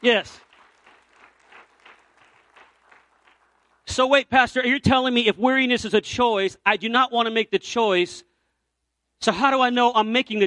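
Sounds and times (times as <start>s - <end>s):
speech: 0.0s - 0.4s, 3.9s - 8.3s, 9.2s - 10.4s
audience clapping hands: 0.0s - 4.0s.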